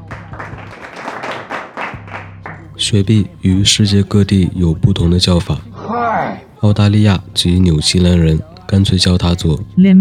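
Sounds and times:
applause: 0.0 - 2.7
speech: 2.8 - 5.7, 6.6 - 9.9.

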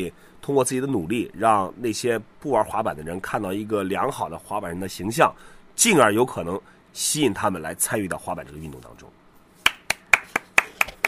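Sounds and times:
speech: 0.0 - 9.2
applause: 9.6 - 11.0.

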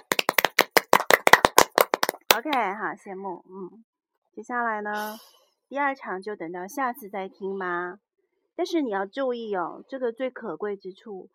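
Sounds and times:
hand clapping: 0.0 - 2.7
speech: 2.3 - 8.0, 8.6 - 11.3.

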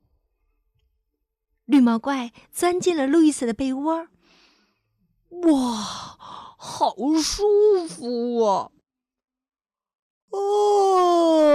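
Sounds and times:
speech: 1.7 - 4.2, 5.3 - 8.8
person yawning: 10.3 - 11.5.

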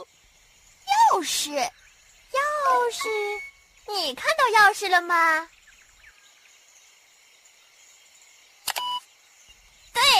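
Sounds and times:
speech: 1.2 - 5.6
sneaky fox character's sound cue clicks: 8.6 - 9.0.

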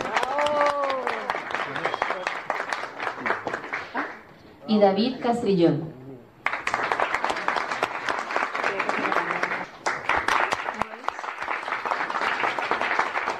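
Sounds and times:
crowd audience applause: 0.0 - 4.3, 6.4 - 13.3
speech: 4.7 - 6.0.

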